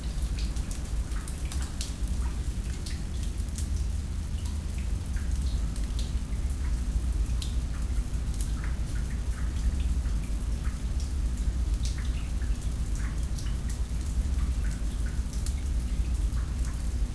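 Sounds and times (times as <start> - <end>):
water dripping in a sewer: 0.0 - 17.1.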